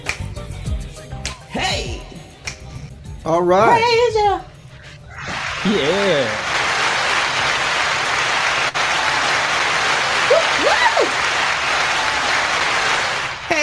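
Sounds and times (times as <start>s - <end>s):
long hand clap sound effect: 0.0s - 0.4s, 1.2s - 1.5s, 5.5s - 13.5s
speech: 3.2s - 4.5s, 5.6s - 6.5s.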